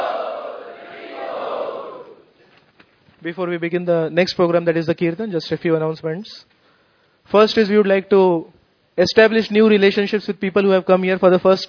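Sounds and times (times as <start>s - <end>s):
festival crowd loudly chanting: 0.0s - 2.3s
speech: 3.2s - 6.5s, 7.3s - 11.6s.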